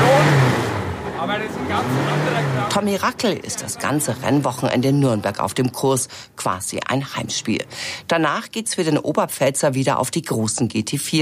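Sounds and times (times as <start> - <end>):
vintage Super Touring Cup race car engine revving at the Nuremberg street circuit: 0.0 - 4.4
speech: 1.2 - 11.1.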